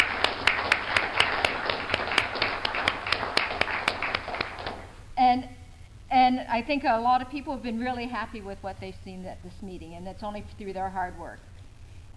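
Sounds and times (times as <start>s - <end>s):
audience applause: 0.0s - 4.9s
speech: 6.6s - 11.5s.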